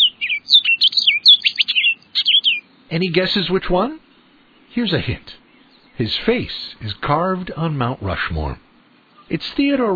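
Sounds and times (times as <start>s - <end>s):
orchard oriole singing: 0.0s - 7.4s, 8.8s - 9.4s
speech: 2.9s - 4.0s, 4.7s - 5.3s, 6.0s - 8.7s, 9.3s - 9.9s.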